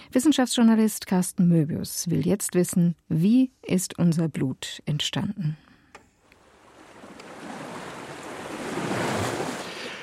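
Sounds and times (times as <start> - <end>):
speech: 0.1 - 5.6
wind: 5.9 - 10.0
ocean waves breaking on the shore: 6.2 - 10.0.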